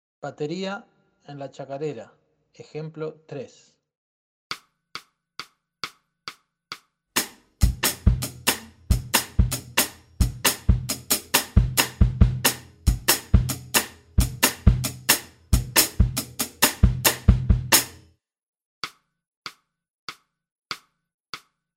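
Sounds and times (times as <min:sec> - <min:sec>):
drum kit in a chacarera: 0:07.2 - 0:18.0.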